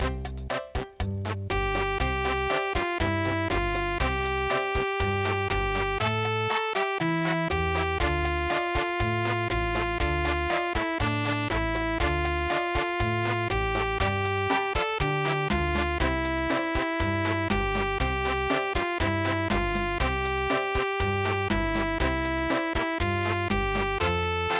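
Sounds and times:
cha-cha-cha music: 0:00.0 - 0:24.5.

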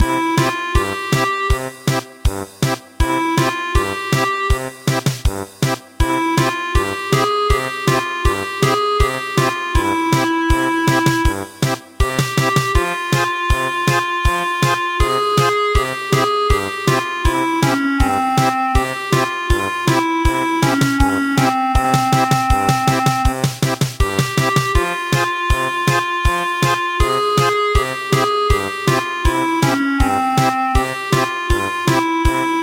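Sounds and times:
German polka music: 0:00.0 - 0:32.6.

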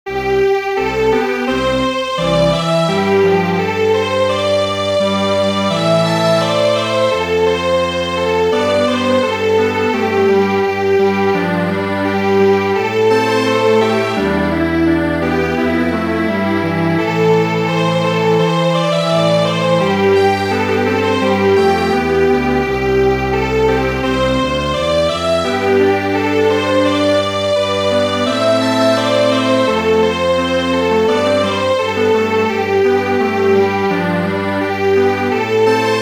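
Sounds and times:
string quartet playing: 0:00.5 - 0:36.0.

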